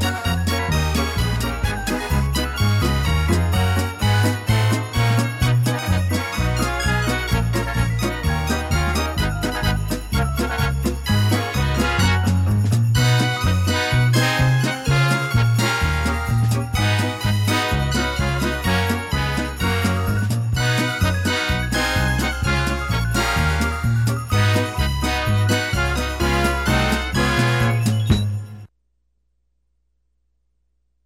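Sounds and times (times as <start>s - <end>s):
harpsichord polka: 0.0s - 28.7s.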